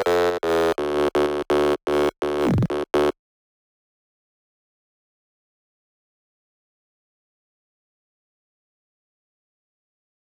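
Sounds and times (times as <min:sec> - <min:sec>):
bass: 0:00.0 - 0:03.2.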